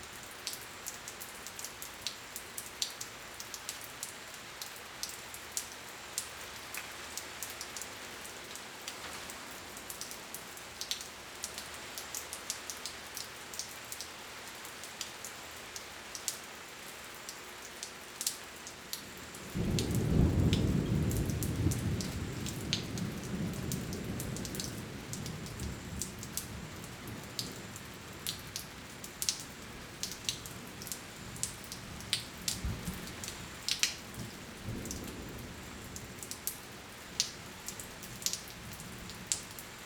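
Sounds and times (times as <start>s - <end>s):
insects: 0.0s - 39.8s
rain drizzle after rain: 0.0s - 39.8s
thunder: 19.5s - 27.5s.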